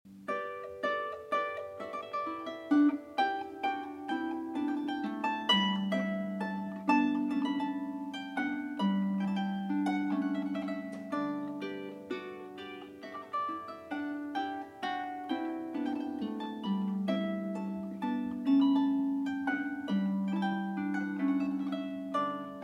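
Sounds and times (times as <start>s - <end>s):
minuet: 0.1s - 22.6s.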